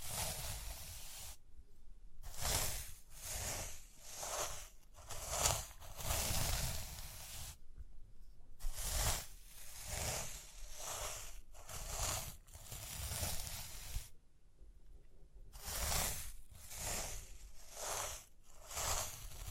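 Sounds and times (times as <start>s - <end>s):
rhinestones tapped, scratched and brushed: 2.3s - 7.6s, 8.7s - 14.1s, 15.6s - 19.4s.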